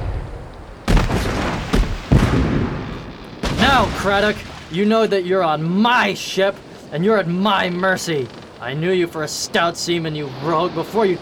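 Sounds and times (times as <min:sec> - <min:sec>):
cannon fire booming: 0:00.0 - 0:04.8
speech: 0:03.8 - 0:11.1.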